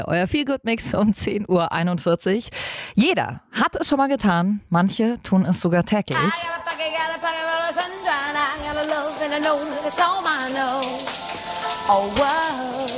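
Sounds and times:
speech: 0:00.0 - 0:11.2, 0:11.9 - 0:12.9
shower water running: 0:06.2 - 0:12.9.

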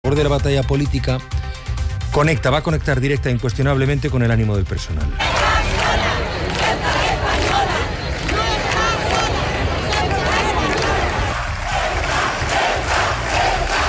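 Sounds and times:
speech: 0:00.1 - 0:01.4, 0:02.1 - 0:05.4
large crowd shouting rhythmic chants in unison: 0:05.2 - 0:13.8.

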